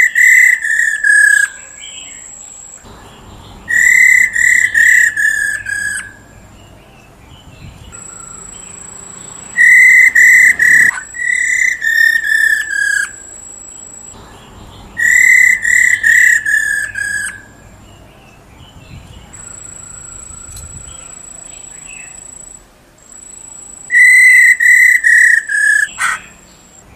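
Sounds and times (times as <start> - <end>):
Black-throated laughingthrush whistling: 0.0 - 1.8, 3.7 - 6.5, 7.8 - 13.2, 15.0 - 17.6, 19.3 - 26.2.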